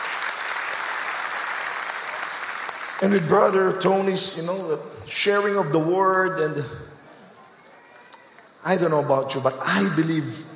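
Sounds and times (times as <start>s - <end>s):
church congregation applause for its worship team: 0.0s - 4.6s
speech: 3.0s - 6.9s, 8.6s - 10.5s.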